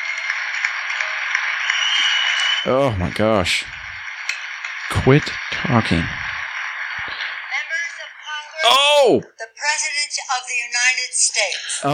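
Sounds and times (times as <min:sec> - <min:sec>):
large audience applauding: 0:00.0 - 0:08.9
speech: 0:02.6 - 0:03.8, 0:05.0 - 0:06.3, 0:09.0 - 0:11.9.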